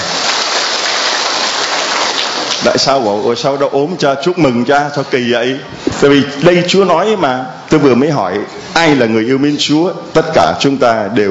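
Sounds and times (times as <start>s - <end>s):
audience applause: 0.0s - 2.8s
speech: 2.6s - 11.2s.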